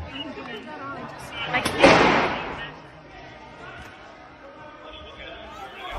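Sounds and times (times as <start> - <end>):
single gunshot inside the Capitol chamber: 1.7 - 2.6.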